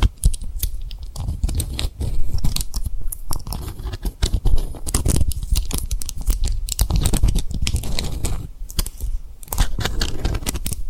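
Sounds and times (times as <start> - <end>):
tapping and rubbing on rhinestone-covered triggers: 0.0 - 10.8.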